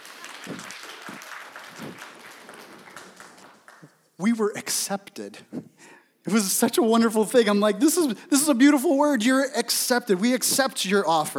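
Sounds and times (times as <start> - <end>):
applause: 0.0 - 4.0
speech: 4.2 - 5.7, 6.3 - 11.3.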